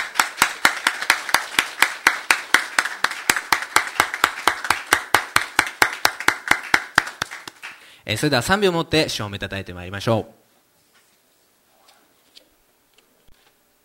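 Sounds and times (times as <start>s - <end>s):
audience clapping hands in thanks: 0.0s - 7.9s
speech: 8.1s - 10.4s.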